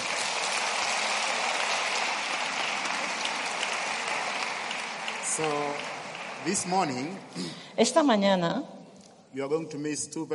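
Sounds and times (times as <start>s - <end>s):
audience applauding: 0.0s - 7.6s
speech: 5.4s - 10.3s.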